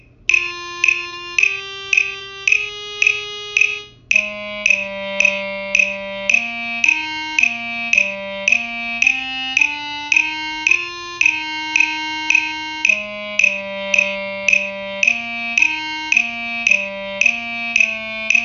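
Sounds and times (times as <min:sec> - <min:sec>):
clarinet: 0:00.3 - 0:18.4.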